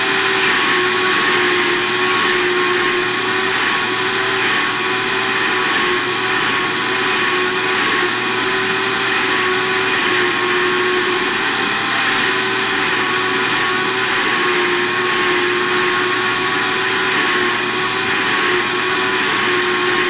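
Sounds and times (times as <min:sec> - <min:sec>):
vacuum cleaner running constantly: 0:00.0 - 0:20.0.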